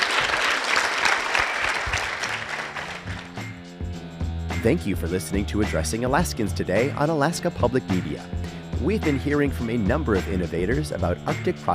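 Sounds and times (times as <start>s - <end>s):
audience applause: 0.0s - 3.5s
speech: 4.6s - 11.7s.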